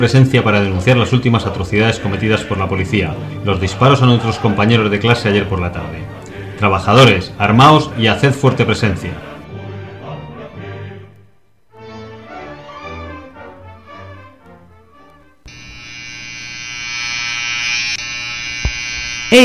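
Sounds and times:
speech: 0.0s - 9.3s
music-like tones: 0.0s - 16.0s
electric razor shaving: 15.5s - 19.4s.

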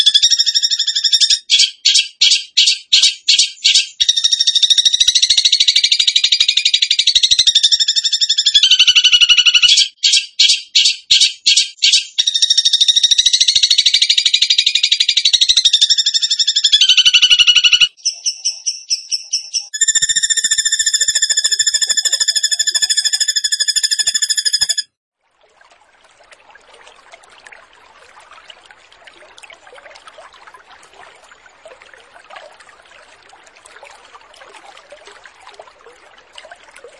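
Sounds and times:
bird trilling: 0.0s - 24.9s.

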